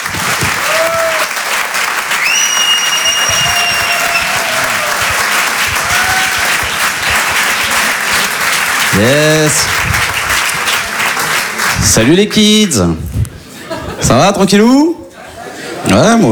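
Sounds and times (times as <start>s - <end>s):
comedy club audience clapping: 0.0s - 12.8s
speech: 9.0s - 10.1s, 11.8s - 13.3s, 14.0s - 15.0s, 15.8s - 16.2s
laughter: 13.3s - 16.2s.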